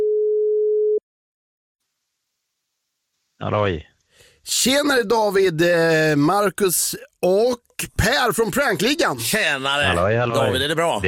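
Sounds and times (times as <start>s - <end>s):
telephone tone after dialing a number for a prank call: 0.0s - 1.0s
speech: 3.4s - 11.0s.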